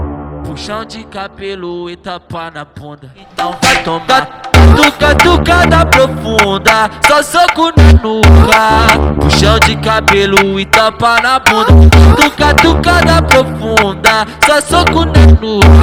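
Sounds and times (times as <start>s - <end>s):
deep batucada samba percussion: 3.4s - 15.8s.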